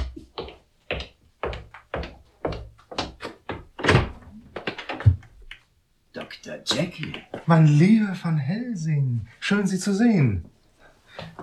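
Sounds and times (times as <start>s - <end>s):
dull knocks and thuds of a door being opened: 1.4s - 5.4s
speech: 6.2s - 10.5s.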